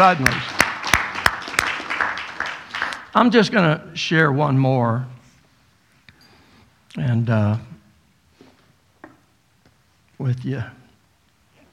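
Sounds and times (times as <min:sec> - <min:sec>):
speech: 0:00.0 - 0:00.6, 0:03.2 - 0:05.2, 0:06.9 - 0:07.7, 0:10.2 - 0:10.8
audience clapping: 0:00.0 - 0:03.4.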